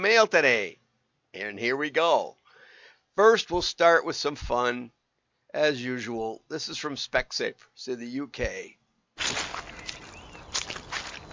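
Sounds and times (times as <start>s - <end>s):
speech: 0.0s - 2.4s, 3.2s - 9.4s
mud squishing underfoot: 9.2s - 11.3s.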